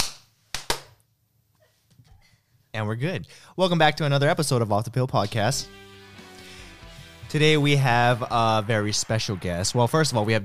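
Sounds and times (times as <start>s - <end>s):
hands clapping: 0.0s - 1.0s, 7.6s - 10.4s
speech: 2.8s - 5.9s, 7.3s - 10.4s.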